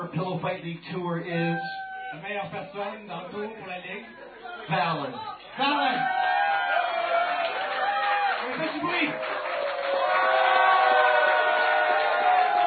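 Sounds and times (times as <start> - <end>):
speech: 0.1 - 6.4, 8.5 - 9.4
crowd cheering: 4.2 - 12.6
applause: 6.2 - 12.6.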